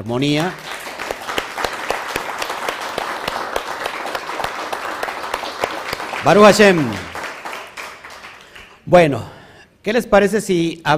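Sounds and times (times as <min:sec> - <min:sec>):
speech: 0:00.0 - 0:00.7, 0:06.2 - 0:07.1, 0:08.9 - 0:10.9
audience applause: 0:00.4 - 0:08.8.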